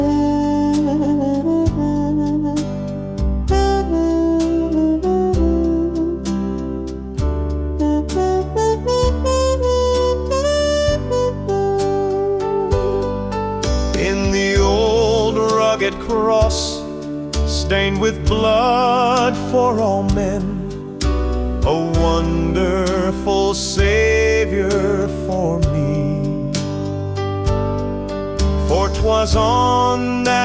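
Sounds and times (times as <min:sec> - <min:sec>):
piano: 0:00.0 - 0:30.4
man singing a hymn: 0:14.0 - 0:20.9, 0:21.6 - 0:26.7, 0:28.6 - 0:30.4.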